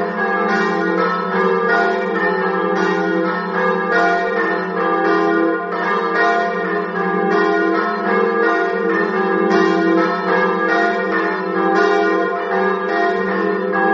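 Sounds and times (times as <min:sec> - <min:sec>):
bells ringing: 0:00.0 - 0:13.9.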